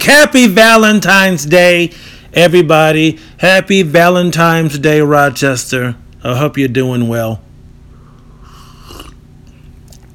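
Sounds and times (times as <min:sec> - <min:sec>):
speech: 0:00.0 - 0:07.4
person sipping coffee: 0:08.6 - 0:09.2.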